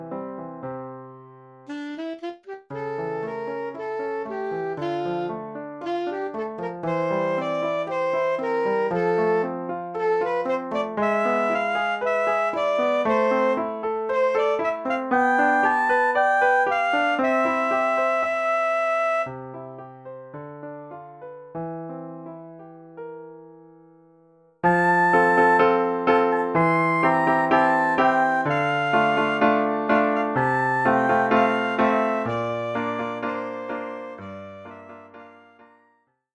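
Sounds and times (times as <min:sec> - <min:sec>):
saxophone: 0:01.7 - 0:19.4, 0:24.6 - 0:35.6.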